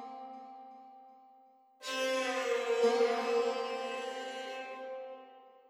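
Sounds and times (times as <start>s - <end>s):
ethnic music: 1.8s - 5.6s.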